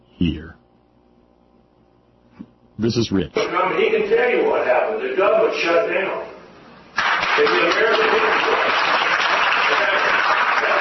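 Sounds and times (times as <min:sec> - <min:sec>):
speech: 0:02.8 - 0:06.3, 0:07.4 - 0:09.0
crowd applause: 0:07.0 - 0:10.7.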